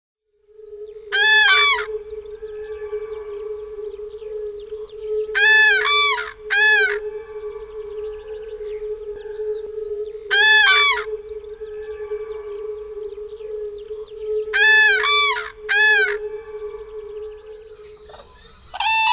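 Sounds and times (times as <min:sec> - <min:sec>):
common cranes trumpeting in rolling bugles: 0:00.5 - 0:19.1.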